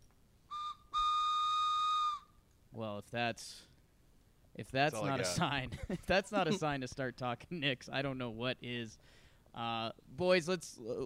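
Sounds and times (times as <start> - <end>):
train whistle: 0.5 - 2.3
speech: 2.8 - 3.7, 4.6 - 11.0.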